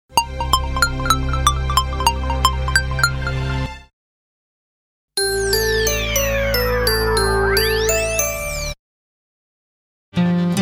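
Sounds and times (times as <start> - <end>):
jingle: 0.2 - 3.7, 5.2 - 8.8.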